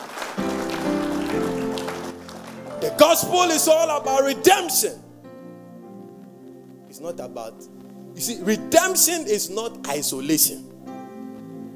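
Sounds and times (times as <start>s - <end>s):
audience clapping: 0.0s - 4.2s
sustained keyboard chord: 0.4s - 11.7s
speech: 2.8s - 5.1s, 7.0s - 10.8s.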